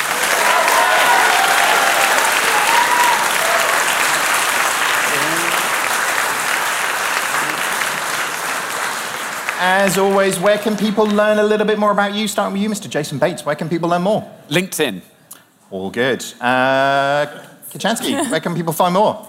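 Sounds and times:
faint cheers: 0:00.0 - 0:04.2
crowd applauding: 0:00.0 - 0:11.5
speech: 0:09.6 - 0:15.1, 0:15.7 - 0:19.2.

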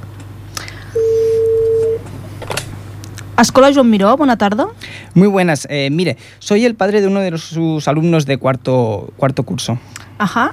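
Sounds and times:
telephone tone while dialing a call: 0:00.9 - 0:02.0
speech: 0:03.4 - 0:10.5.

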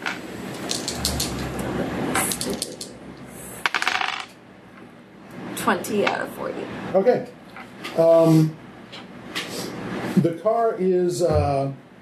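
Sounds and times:
dice rattling and tumbling across a hard surface: 0:00.0 - 0:01.4, 0:02.2 - 0:02.9, 0:03.6 - 0:04.3
speech: 0:05.6 - 0:07.4, 0:08.0 - 0:09.0, 0:10.2 - 0:11.8.

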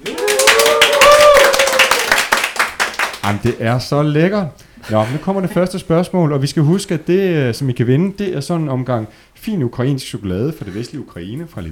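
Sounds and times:
sustained cheer or whoop: 0:00.0 - 0:02.2
live audience clapping: 0:00.0 - 0:03.4
speech: 0:03.3 - 0:11.7.

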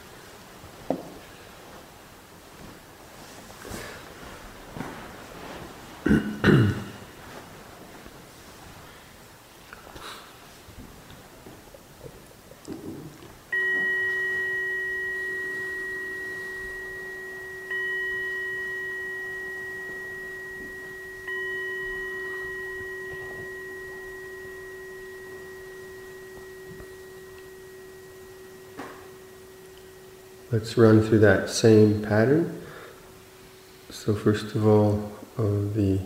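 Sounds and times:
Zen clock chime ringing: 0:13.5 - 0:35.1
speech: 0:30.6 - 0:32.6, 0:34.0 - 0:36.0.

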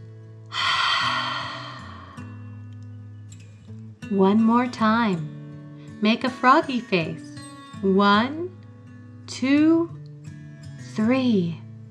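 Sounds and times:
deep breath in and out during a children's relaxation exercise: 0:00.5 - 0:02.5
speech: 0:04.1 - 0:05.4, 0:06.0 - 0:08.4, 0:09.3 - 0:10.0, 0:11.0 - 0:11.6.

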